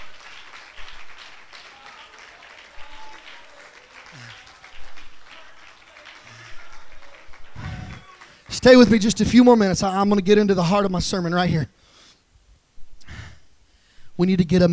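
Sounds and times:
audience clapping hands: 0.0s - 9.8s
speech: 8.6s - 11.8s, 14.2s - 14.7s.

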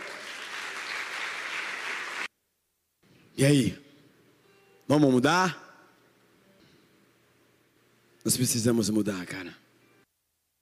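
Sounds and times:
audience applauding: 0.0s - 2.3s
speech: 3.4s - 3.8s, 4.9s - 5.6s, 8.2s - 9.6s.

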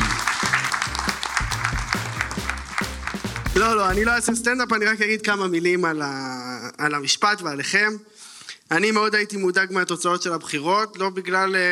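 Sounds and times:
audience applause: 0.0s - 4.2s
speech: 3.6s - 8.1s, 8.7s - 11.7s.

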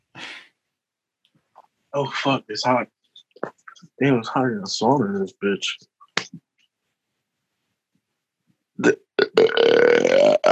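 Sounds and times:
speech: 1.9s - 5.9s, 8.8s - 9.0s
burp: 8.8s - 10.5s.

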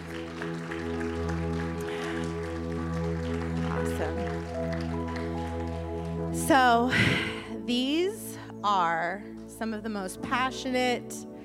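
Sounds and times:
audience applause: 0.0s - 6.4s
speech: 6.5s - 11.3s.

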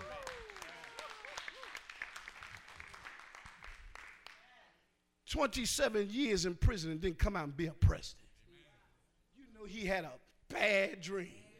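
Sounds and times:
audience applause: 0.0s - 4.4s
speech: 5.3s - 8.2s, 9.8s - 11.4s.

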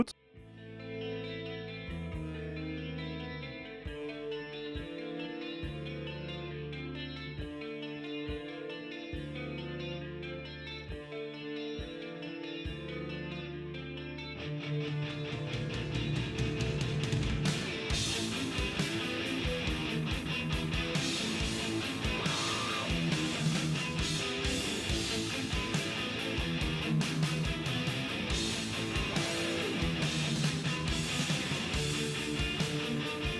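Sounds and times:
prominent lead bass guitar: 0.0s - 33.3s
full band playing: 14.5s - 33.3s.

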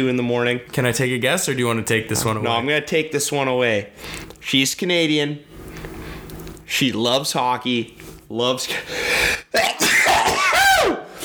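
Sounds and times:
speech: 0.0s - 5.6s, 6.7s - 9.8s
loud forceful sneeze: 9.5s - 11.2s.

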